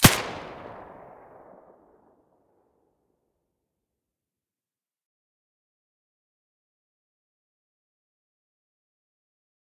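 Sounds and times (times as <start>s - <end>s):
suppressed gunshot: 0.0s - 1.6s.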